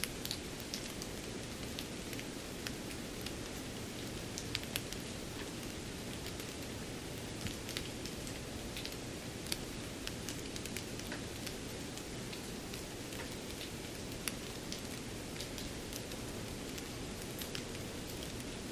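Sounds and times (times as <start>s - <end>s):
light drizzling rain: 0.0s - 18.7s.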